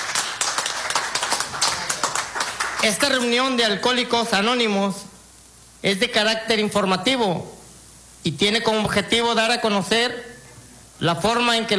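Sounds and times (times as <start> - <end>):
audience applause at an informational meeting: 0.0 - 2.8
speech: 2.8 - 5.1, 5.8 - 7.6, 8.2 - 10.3, 11.0 - 11.7.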